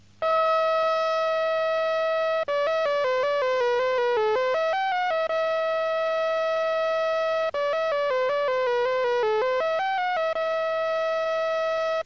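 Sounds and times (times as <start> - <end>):
simple microcomputer-generated square-wave melody: 0.0 - 12.0.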